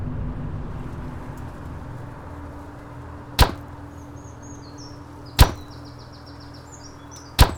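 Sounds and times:
dull hammer blows driving wooden posts: 3.4 - 3.6, 5.4 - 5.7.

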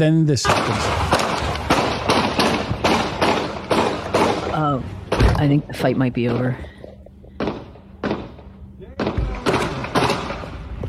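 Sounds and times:
speech: 0.0 - 1.2, 4.7 - 6.7
gunshots from a played police video of a fight at a McDonald's: 0.5 - 5.5, 7.4 - 10.7.

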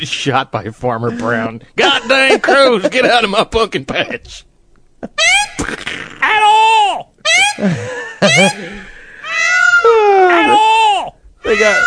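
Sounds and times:
speech: 0.0 - 4.5, 5.1 - 8.8, 11.5 - 11.8
laughter: 1.2 - 3.3, 7.4 - 9.1
peacock calling: 5.2 - 5.8, 8.4 - 11.8.

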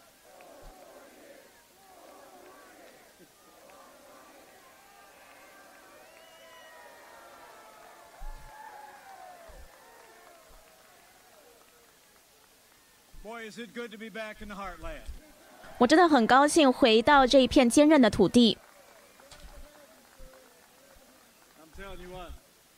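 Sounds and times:
crowd shouting: 0.0 - 13.3, 15.0 - 22.2
crowd cheering: 0.0 - 22.7
speech: 13.3 - 15.2, 15.8 - 18.6.

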